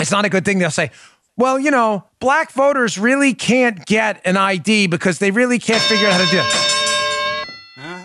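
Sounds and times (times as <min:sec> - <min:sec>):
speech: 0:00.0 - 0:06.8
bell ding sound effect: 0:05.7 - 0:08.0.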